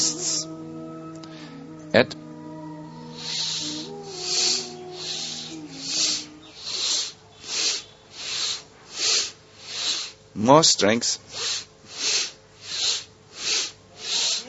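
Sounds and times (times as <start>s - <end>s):
Bhastrika Pranayama bellows breathing: 0.0s - 0.5s, 3.0s - 14.4s
soft sustained musical notes: 0.0s - 6.6s
speech: 2.0s - 2.2s, 10.5s - 11.6s.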